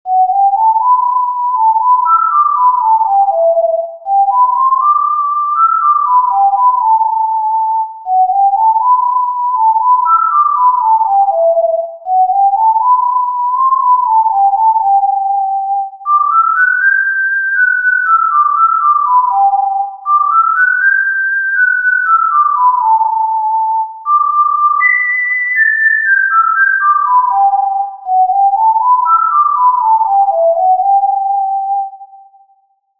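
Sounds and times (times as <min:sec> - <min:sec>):
D tin whistle melody: 0:00.0 - 0:32.8.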